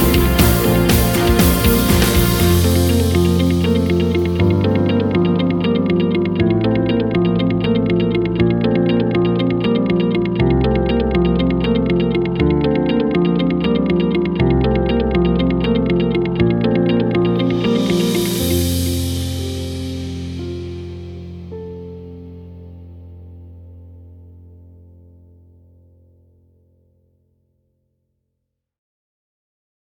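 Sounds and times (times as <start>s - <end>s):
uplifting corporate music: 0.0s - 22.9s.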